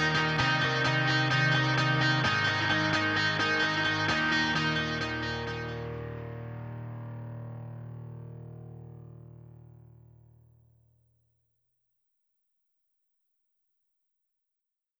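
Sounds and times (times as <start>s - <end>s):
guitar solo: 0.0s - 10.0s.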